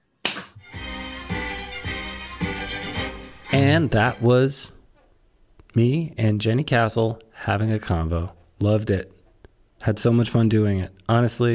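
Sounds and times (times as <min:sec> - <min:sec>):
sharp hand clap to start recording: 0:00.2 - 0:00.6
steady tonal sound: 0:00.6 - 0:04.8
speech: 0:03.6 - 0:04.8, 0:05.8 - 0:09.2, 0:09.8 - 0:11.5.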